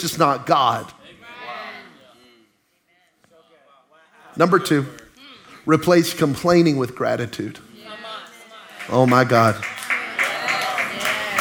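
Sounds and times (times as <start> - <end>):
speech: 0.0 - 1.0, 4.4 - 5.0, 5.6 - 7.7, 8.9 - 9.8
one person clapping in audience: 9.1 - 11.4.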